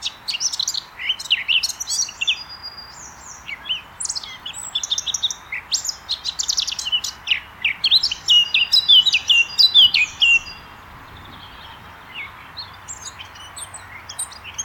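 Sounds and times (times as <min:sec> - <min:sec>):
Eurasian blackcap song: 0:00.0 - 0:14.6
faint bird calls: 0:06.3 - 0:14.2.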